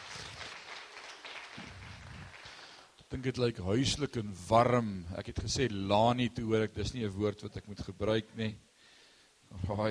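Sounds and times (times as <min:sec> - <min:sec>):
audience clapping hands: 0:00.0 - 0:03.0
speech: 0:03.1 - 0:08.7, 0:09.5 - 0:09.8.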